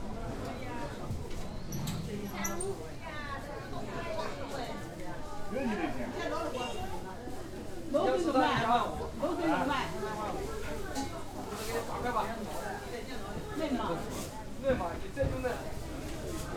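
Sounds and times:
lively close voices in an interior market in Shanghai: 0.0 - 16.5.

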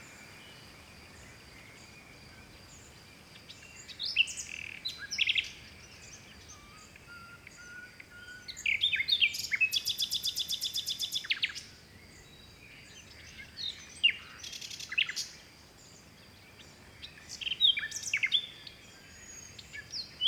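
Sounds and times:
songbird trills and chirps: 0.0 - 20.2
wind: 0.0 - 20.2.

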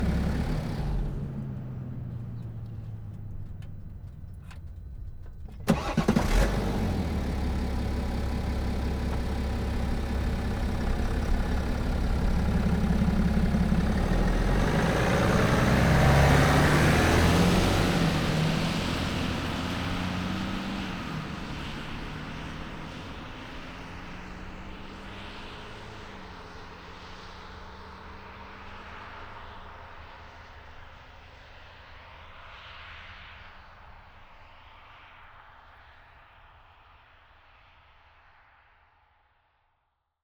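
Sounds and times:
BMW F12 640D Gran Coupe engine switched off and on on wet asphalt: 0.0 - 26.6.

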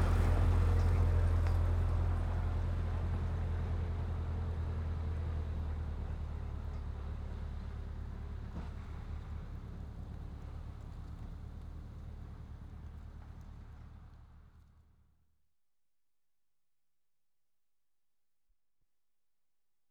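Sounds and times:
two Ford tractor engines: 0.0 - 7.3.

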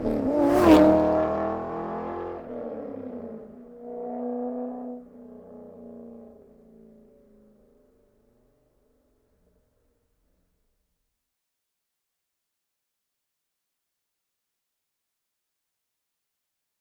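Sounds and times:
2004 Corvette C5 driving by: 0.0 - 5.6.

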